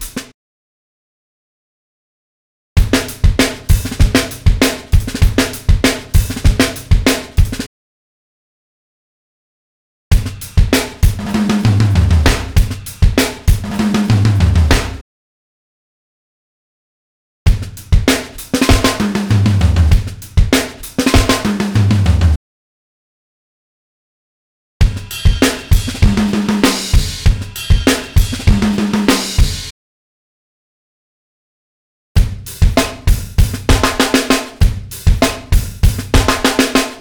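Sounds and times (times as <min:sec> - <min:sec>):
hip hop drum fills at 98 BPM: 0:00.0 - 0:00.3, 0:02.8 - 0:07.7, 0:10.2 - 0:15.0, 0:17.5 - 0:22.4, 0:24.8 - 0:29.7, 0:32.2 - 0:36.9.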